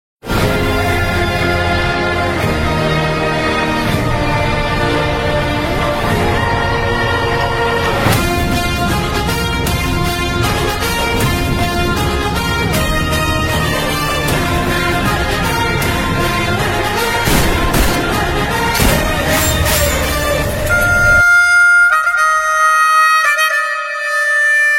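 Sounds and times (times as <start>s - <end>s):
intro background music: 0.2s - 24.7s.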